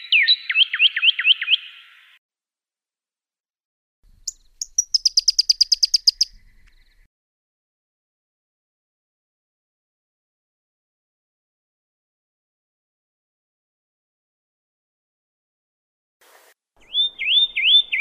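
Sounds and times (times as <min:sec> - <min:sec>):
Pyrrhuloxia song with downslurred whistles and rapid trill: 0:00.0 - 0:02.2, 0:04.3 - 0:07.0, 0:16.8 - 0:17.9.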